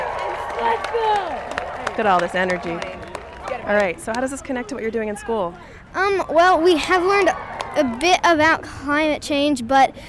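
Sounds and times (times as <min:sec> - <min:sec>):
crowd: 0:00.0 - 0:08.8
speech: 0:00.6 - 0:03.0, 0:03.6 - 0:10.0.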